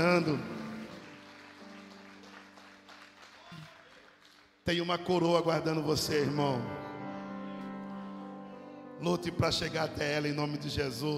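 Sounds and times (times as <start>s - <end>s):
speech: 0.0s - 0.6s, 4.7s - 6.8s, 9.0s - 11.1s
audience applauding: 0.0s - 4.6s.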